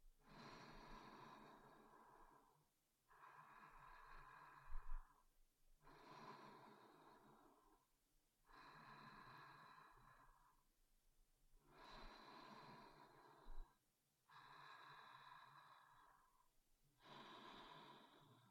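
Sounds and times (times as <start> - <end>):
sleep breathing: 0.2 - 2.5, 3.1 - 5.2, 5.8 - 7.8, 8.5 - 10.6, 11.7 - 16.4, 17.0 - 18.4.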